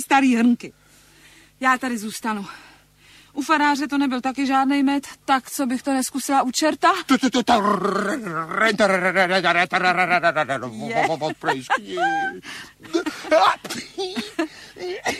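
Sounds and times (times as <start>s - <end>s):
speech: 0.0s - 0.8s, 1.6s - 2.7s, 3.4s - 15.1s
voice imitating a dog whimpering, snorting and coughing: 7.4s - 11.1s, 11.8s - 12.4s, 13.3s - 15.1s
laughter: 8.6s - 15.1s.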